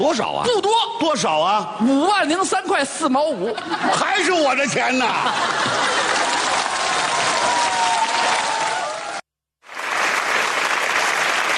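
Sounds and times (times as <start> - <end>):
speech: 0.0 - 6.0
laughter: 3.4 - 6.8
audience applause: 5.4 - 11.5.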